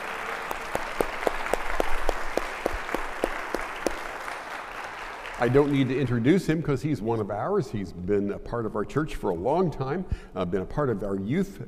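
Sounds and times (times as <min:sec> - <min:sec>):
church congregation applauding to welcome a new director of student ministries: 0:00.0 - 0:06.3
speech: 0:05.4 - 0:11.6.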